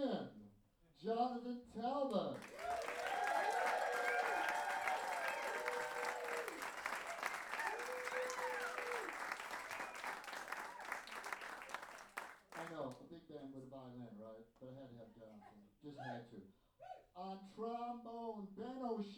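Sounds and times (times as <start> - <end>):
speech: 0.0 - 3.0, 13.2 - 19.1
audience applause: 2.4 - 12.7.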